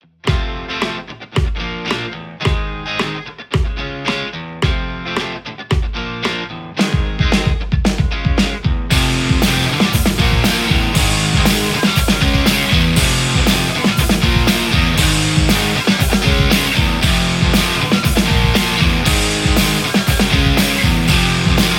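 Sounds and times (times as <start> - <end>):
Fender Stratocaster electric guitar: 0.2 - 21.7.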